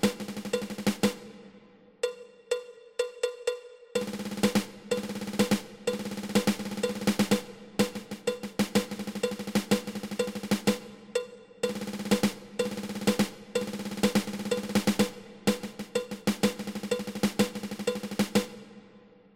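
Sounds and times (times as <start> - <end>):
ten stroke drum roll: 0.0 - 1.4, 4.0 - 10.9, 11.6 - 18.7.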